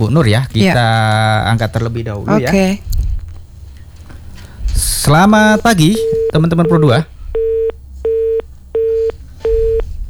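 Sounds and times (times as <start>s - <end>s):
speech: 0.0s - 3.0s, 4.8s - 7.1s
busy tone on a phone-in line after the call is cut off: 6.0s - 10.0s.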